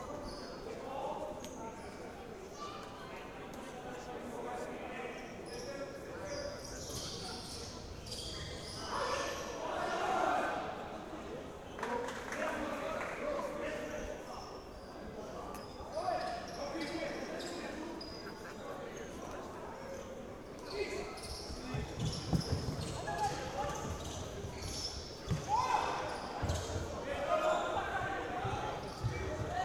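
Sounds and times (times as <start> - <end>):
men's league futsal match ambience: 0.0 - 29.6.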